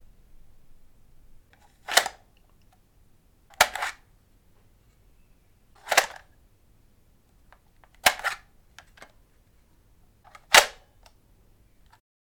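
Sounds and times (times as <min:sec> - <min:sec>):
Game Boy cartridge being inserted: 0:01.6 - 0:02.2, 0:03.5 - 0:04.0, 0:05.8 - 0:06.3, 0:07.8 - 0:09.1, 0:10.3 - 0:10.8.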